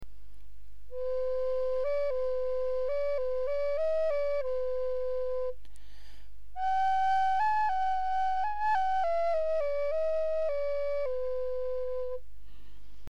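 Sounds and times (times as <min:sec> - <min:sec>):
flute: 0:00.9 - 0:05.6, 0:06.6 - 0:12.3.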